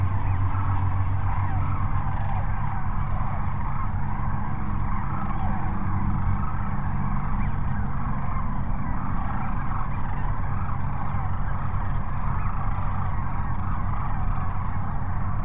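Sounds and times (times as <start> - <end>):
sandhill cranes calling in a rattling bugling chorus at Cochise Lakes: 0.0 - 15.4.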